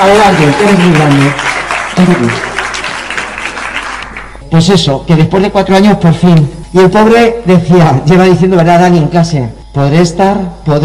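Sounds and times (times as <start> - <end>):
speech: 0.0 - 2.5, 4.5 - 10.8
audience applause: 0.0 - 4.4.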